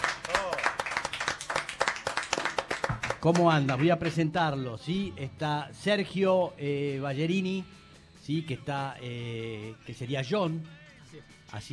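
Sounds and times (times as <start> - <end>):
audience applause: 0.0 - 3.9
speech: 3.2 - 11.7.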